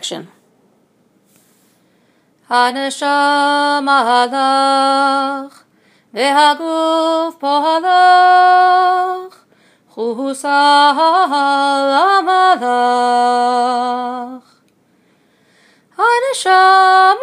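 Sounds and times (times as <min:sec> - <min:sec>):
Hebrew song: 0:02.5 - 0:14.6, 0:15.9 - 0:17.2.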